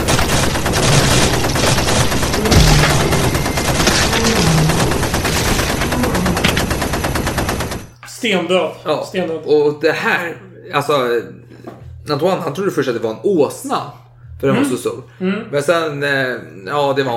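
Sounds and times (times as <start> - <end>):
rapid gunfire bursts sound effect: 0.0 - 8.0
speech: 8.2 - 11.4, 12.0 - 17.1.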